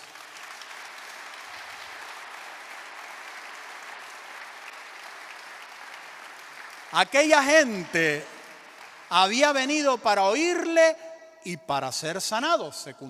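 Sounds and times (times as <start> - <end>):
audience applause: 0.0 - 9.9
speech: 6.9 - 8.3, 9.1 - 13.0.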